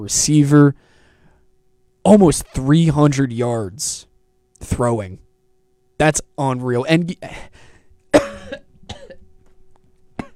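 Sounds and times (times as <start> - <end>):
speech: 0.0 - 0.9, 2.0 - 5.2, 6.0 - 7.7
person coughing from choking on their own spit: 8.1 - 9.2, 10.2 - 10.3.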